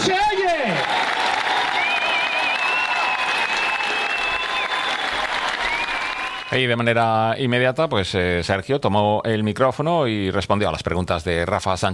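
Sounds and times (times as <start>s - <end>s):
crowd applause: 0.6s - 6.6s
speech: 6.5s - 11.9s.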